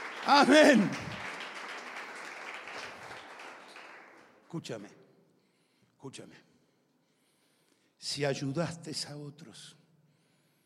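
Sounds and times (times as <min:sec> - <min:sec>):
audience applause: 0:00.0 - 0:04.4
speech: 0:00.3 - 0:01.1, 0:04.5 - 0:05.0, 0:06.0 - 0:06.5, 0:08.0 - 0:09.8.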